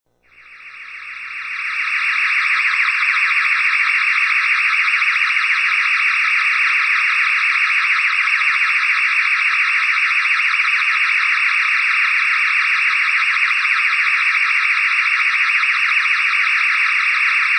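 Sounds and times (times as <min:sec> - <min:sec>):
high-pitched electronic spaceship hovering above: 0:00.3 - 0:17.4.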